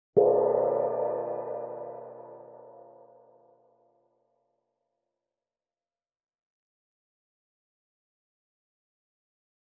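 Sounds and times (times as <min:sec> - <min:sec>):
gong: 0:00.2 - 0:03.8.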